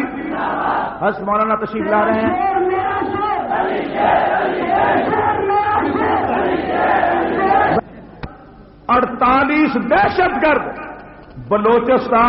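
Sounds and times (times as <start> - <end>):
large crowd chanting a takbir slogan: 0.0 - 1.0, 3.0 - 7.9
speech: 1.0 - 2.8, 3.5 - 7.6, 8.9 - 10.8, 11.4 - 12.2.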